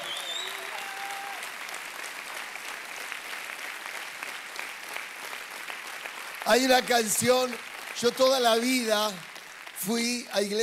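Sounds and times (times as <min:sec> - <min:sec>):
faint whistles and cheers: 0:00.0 - 0:01.5
church audience applause: 0:00.0 - 0:10.6
speech: 0:06.5 - 0:10.6.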